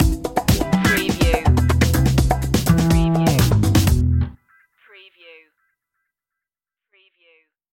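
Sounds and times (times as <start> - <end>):
funk stinger music: 0.0 - 4.4.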